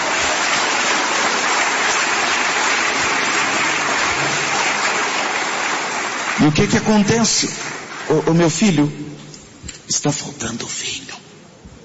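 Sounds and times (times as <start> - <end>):
audience applause: 0.0 - 8.8
speech: 6.4 - 9.1, 9.9 - 11.0.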